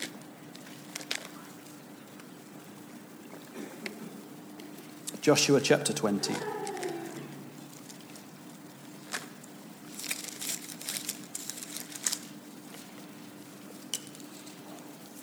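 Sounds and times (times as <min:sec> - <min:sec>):
rustle of Bible pages being turned: 0:00.0 - 0:02.7, 0:06.1 - 0:15.2
speech: 0:05.2 - 0:06.7.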